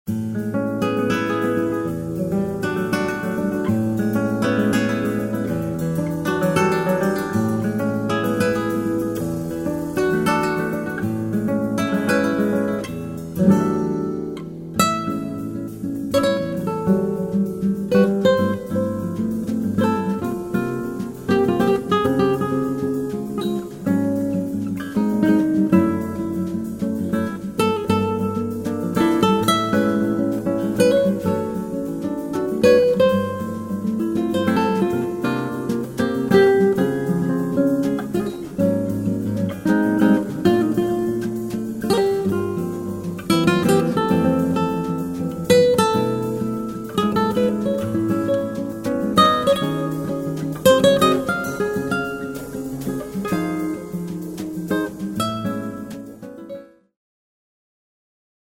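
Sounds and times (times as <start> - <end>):
samba music: 0.1 - 56.6.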